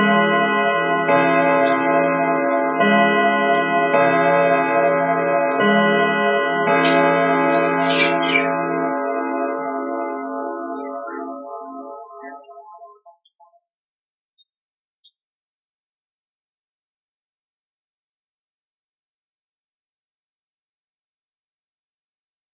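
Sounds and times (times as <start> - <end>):
bells ringing: 0.0 - 13.0.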